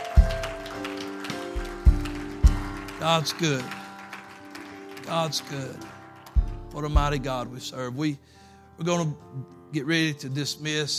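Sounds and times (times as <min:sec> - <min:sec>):
audience clapping in praise: 0:00.0 - 0:07.5
speech: 0:03.0 - 0:03.8, 0:05.1 - 0:06.0, 0:06.8 - 0:10.9.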